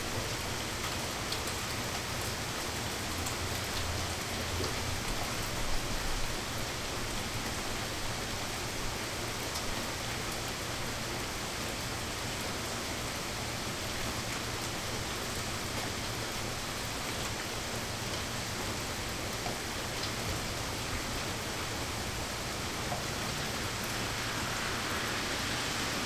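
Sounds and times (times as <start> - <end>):
rain in Toronto: 0.0 - 26.0
traffic passing in Toronto: 20.2 - 26.0.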